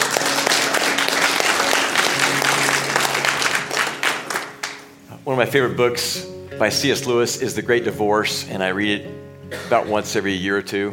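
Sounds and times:
audience clapping: 0.0 - 5.0
speech: 5.4 - 10.9.

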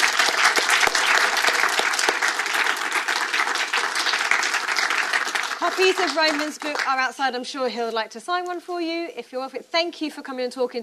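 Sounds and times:
audience applause: 0.0 - 7.0
speech: 5.8 - 10.8.

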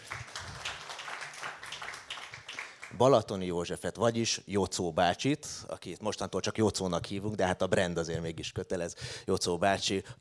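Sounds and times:
audience applause: 0.0 - 3.0
speech: 3.0 - 10.1.

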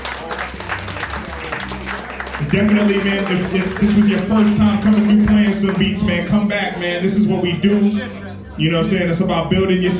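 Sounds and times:
audience applause for producers: 0.0 - 6.1
speech: 2.4 - 9.9.

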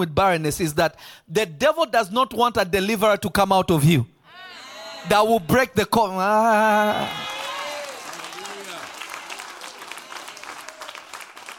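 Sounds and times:
speech: 0.0 - 4.1, 5.0 - 7.3
audience clapping: 6.8 - 11.5.

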